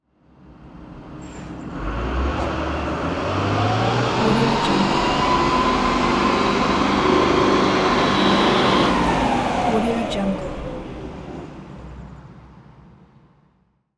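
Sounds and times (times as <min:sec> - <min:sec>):
truck driving away: 0:00.3 - 0:13.7.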